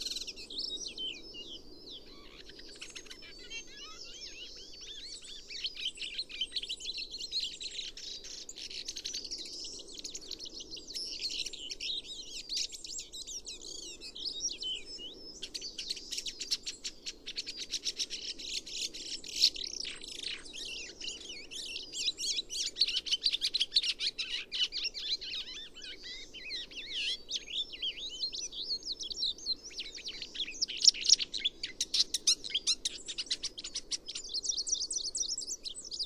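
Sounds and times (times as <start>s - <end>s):
komukudori bird: 0.0s - 36.0s.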